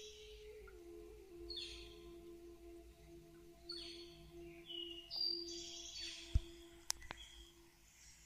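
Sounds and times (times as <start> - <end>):
Native American bird flute: 0.0 - 7.8.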